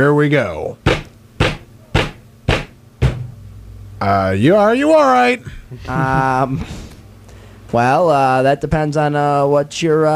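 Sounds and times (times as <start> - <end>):
speech: 0.0 - 0.9, 4.0 - 6.9, 7.7 - 10.1
heavy hammer blows on a metal bolt: 0.9 - 3.4
laughter: 5.5 - 6.8.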